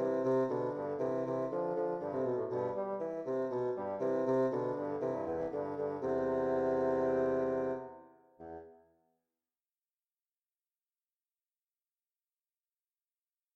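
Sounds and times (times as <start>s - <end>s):
bassoon duet: 0.0s - 8.7s.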